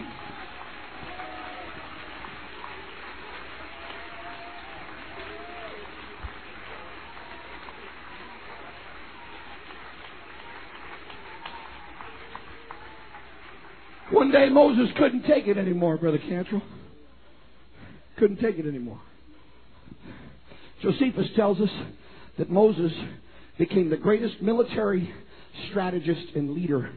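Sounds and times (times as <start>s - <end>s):
audience clapping: 0.0s - 15.8s
speech: 14.2s - 16.8s, 18.2s - 19.1s, 20.8s - 26.9s.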